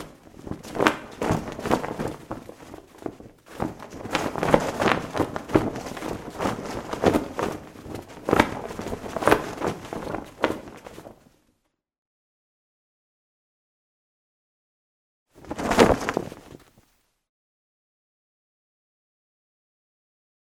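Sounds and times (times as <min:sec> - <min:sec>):
flag flapping hard in the wind: 0:00.0 - 0:11.4, 0:15.4 - 0:16.9.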